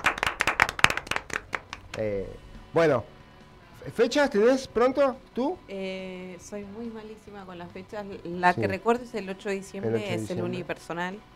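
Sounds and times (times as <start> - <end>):
hand claps for an actress after a radio theatre performance: 0.0 - 2.3
speech: 2.0 - 3.2, 3.8 - 11.3.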